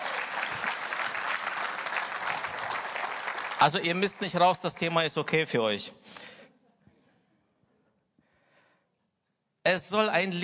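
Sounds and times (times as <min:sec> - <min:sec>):
audience applause: 0:00.0 - 0:05.0
speech: 0:03.6 - 0:06.4, 0:09.7 - 0:10.4.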